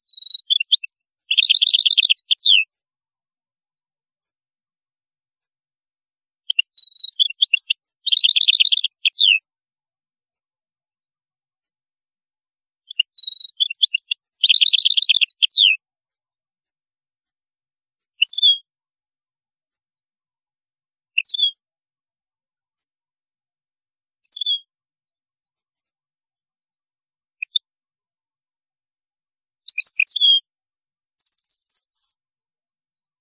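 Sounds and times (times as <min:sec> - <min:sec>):
European goldfinch singing: 0:00.1 - 0:02.6, 0:06.5 - 0:09.4, 0:12.9 - 0:15.8, 0:18.2 - 0:18.6, 0:21.2 - 0:21.5, 0:24.2 - 0:24.6, 0:29.7 - 0:30.4.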